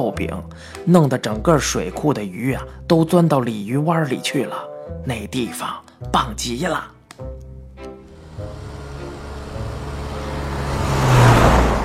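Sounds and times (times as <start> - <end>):
speech: 0.0 - 7.0
car driving along road: 7.7 - 11.8
road noise: 7.7 - 11.8.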